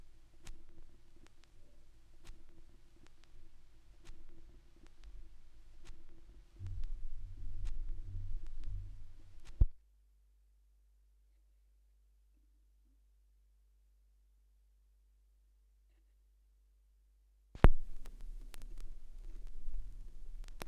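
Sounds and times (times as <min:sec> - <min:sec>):
vinyl record noise: 0:00.0 - 0:09.7, 0:17.6 - 0:20.6.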